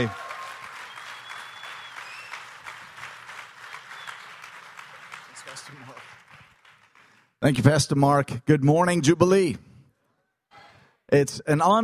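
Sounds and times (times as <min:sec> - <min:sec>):
speech: 0:00.0 - 0:00.2, 0:07.4 - 0:09.7, 0:11.1 - 0:11.8
church congregation applauding to welcome a guest speaker: 0:00.0 - 0:07.4.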